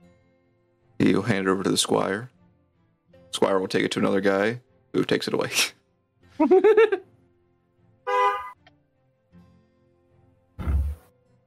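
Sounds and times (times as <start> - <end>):
speech: 1.0 - 2.4, 3.4 - 5.8, 6.4 - 7.0
laughter: 6.4 - 7.1
car horn honking: 8.1 - 8.6.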